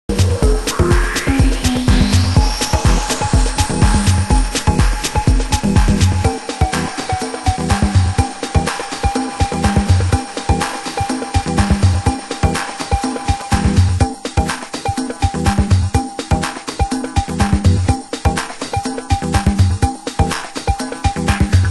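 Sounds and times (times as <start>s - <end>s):
drum: 0.1s - 21.6s.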